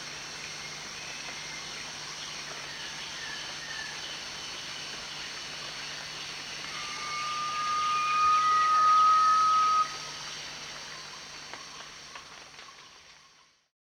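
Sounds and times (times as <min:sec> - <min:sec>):
Garnet pitta giving one long level whistle at Danum: 0:06.6 - 0:10.2.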